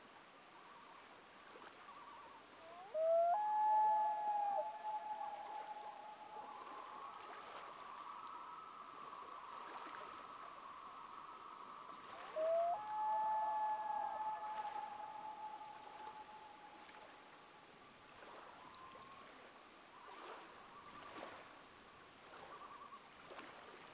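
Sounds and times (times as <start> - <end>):
common loon wail: 2.7 - 7.0, 12.4 - 16.8.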